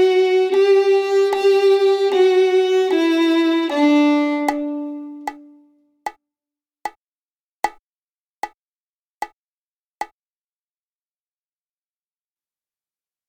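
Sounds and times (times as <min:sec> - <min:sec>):
violin played on the D string: 0:00.0 - 0:05.7.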